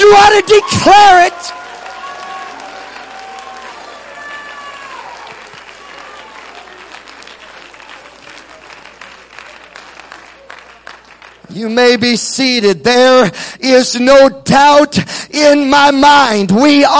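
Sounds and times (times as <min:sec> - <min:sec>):
speech: 0:00.0 - 0:01.6, 0:11.6 - 0:16.9
audience shouting: 0:00.0 - 0:07.2
audience clapping: 0:00.4 - 0:12.0.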